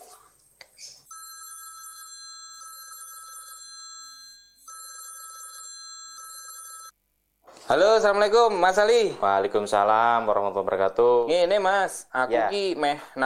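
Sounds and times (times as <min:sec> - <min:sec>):
telephone ringback tone while placing a call: 0:01.1 - 0:07.0
speech: 0:07.7 - 0:13.2.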